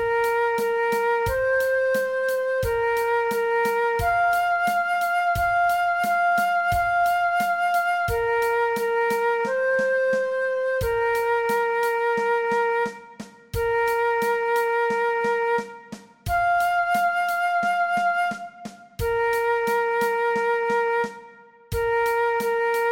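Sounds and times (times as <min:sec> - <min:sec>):
adapted transverse flute alternate play-along track: 0:00.0 - 0:22.9.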